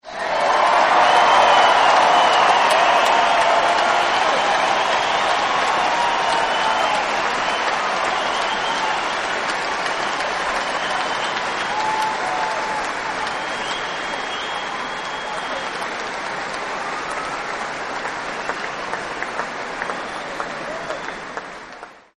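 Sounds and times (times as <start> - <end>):
big crowd cheering: 0.0 - 22.1.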